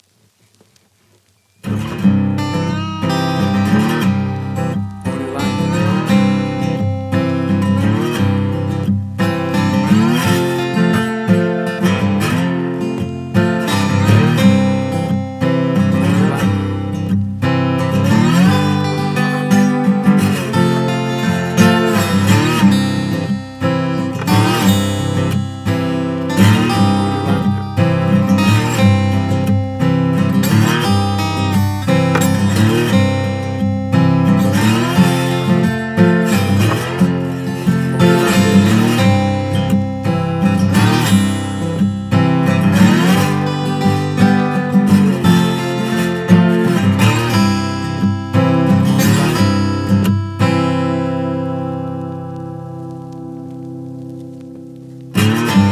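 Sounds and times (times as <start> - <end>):
blues music: 1.6 - 55.7.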